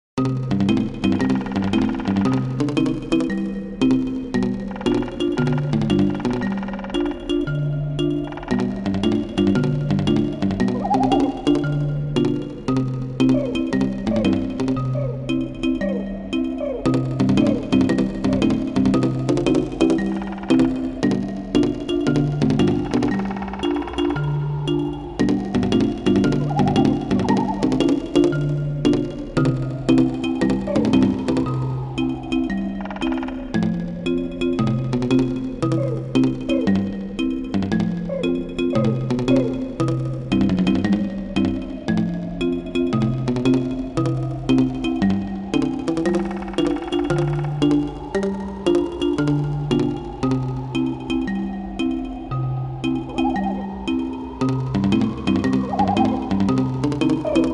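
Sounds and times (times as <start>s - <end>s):
autumn treetop ambience: 0.7s - 57.5s.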